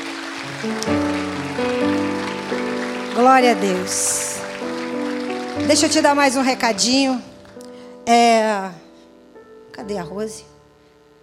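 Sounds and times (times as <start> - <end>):
audience applause: 0.0 - 7.6
speech: 0.6 - 1.0, 3.2 - 4.3, 5.6 - 7.3, 8.0 - 8.8, 9.8 - 10.5.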